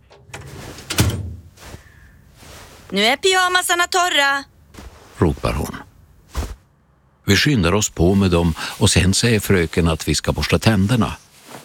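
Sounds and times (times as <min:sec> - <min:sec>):
drying cabinet door opening in a school classroom: 0:00.0 - 0:01.6
speech: 0:02.9 - 0:04.5, 0:05.2 - 0:05.7, 0:07.3 - 0:11.2.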